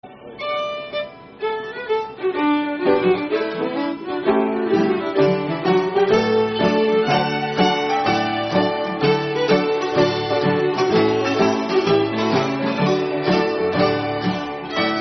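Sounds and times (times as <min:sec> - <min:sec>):
schottische dance music: 0:01.8 - 0:15.0.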